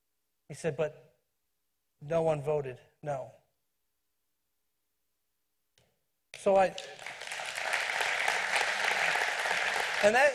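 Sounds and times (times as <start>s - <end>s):
speech: 0.5s - 1.1s, 2.0s - 3.4s, 6.4s - 7.1s, 10.0s - 10.3s
audience applause: 6.8s - 10.3s.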